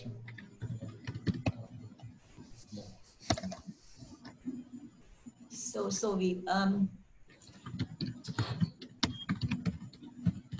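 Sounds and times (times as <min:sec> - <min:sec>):
computer keyboard typing: 0:00.2 - 0:01.6, 0:07.6 - 0:10.5
speech: 0:05.8 - 0:07.0.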